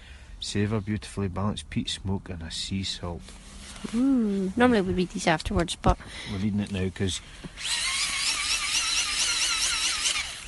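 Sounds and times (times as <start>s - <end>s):
speech: 0.4s - 8.1s
wind-up torch being cranked, mechanical whirring: 7.6s - 10.4s.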